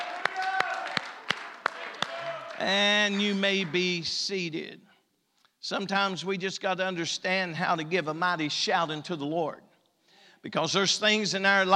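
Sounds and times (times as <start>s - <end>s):
audience hand clapping: 0.0s - 4.0s
speech: 2.6s - 4.9s, 5.6s - 9.7s, 10.4s - 11.7s.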